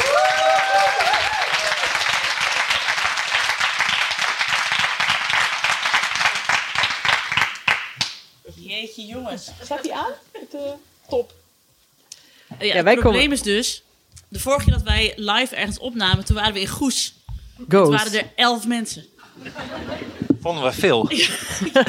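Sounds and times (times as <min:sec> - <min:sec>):
crowd applause: 0:00.0 - 0:08.0
speech: 0:09.0 - 0:11.4, 0:12.6 - 0:21.8
laughter: 0:19.2 - 0:20.4, 0:21.0 - 0:21.8.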